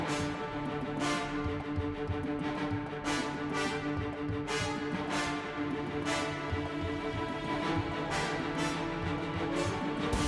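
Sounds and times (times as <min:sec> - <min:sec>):
airship boss intro game music: 0:00.1 - 0:10.2.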